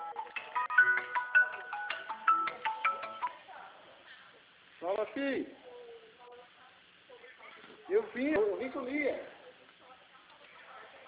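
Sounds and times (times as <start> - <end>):
telephone ringing: 0.0 - 3.4
speech: 5.0 - 5.6, 7.9 - 9.3.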